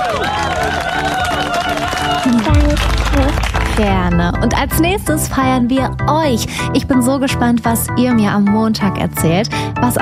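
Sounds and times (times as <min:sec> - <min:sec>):
applause: 0:00.0 - 0:04.3
speech: 0:03.8 - 0:09.9.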